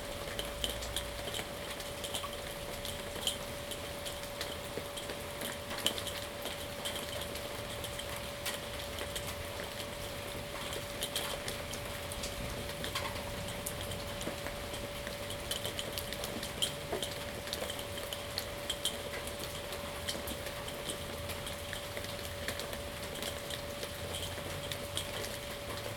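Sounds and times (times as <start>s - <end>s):
thunderstorm rain heard from a patio in Salem Oregon: 0.0s - 25.9s.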